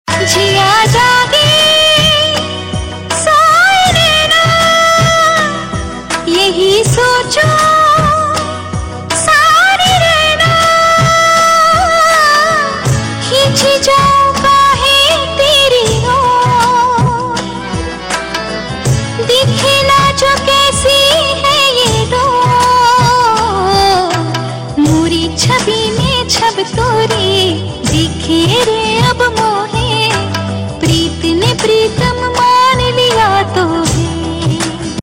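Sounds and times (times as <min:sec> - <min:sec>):
woman singing: 0:00.1 - 0:35.0.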